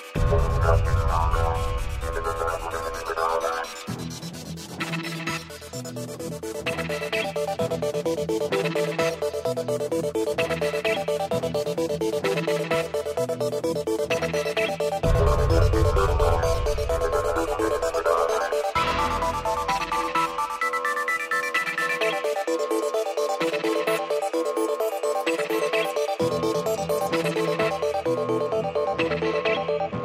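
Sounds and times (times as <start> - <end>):
JT news ambience: 0.2 - 4.2, 5.6 - 29.9.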